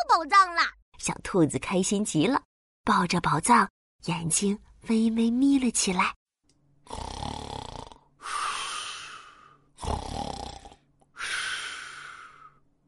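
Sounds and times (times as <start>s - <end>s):
speech: 0.0s - 6.2s, 6.9s - 7.2s
soft snoring: 6.9s - 12.4s.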